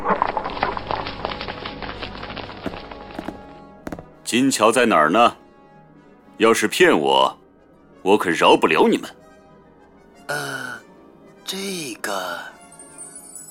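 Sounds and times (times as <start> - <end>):
horse-drawn carriage hooves clip-clopping: 0.1 - 4.2
speech: 4.3 - 5.4, 6.4 - 7.4, 8.0 - 9.2
light bell-like tinkles of a horse-drawn carriage: 12.6 - 13.4.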